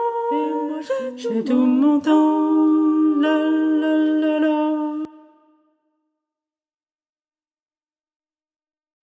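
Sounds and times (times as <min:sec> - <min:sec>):
tenor and bass voices singing: 0:00.0 - 0:05.1.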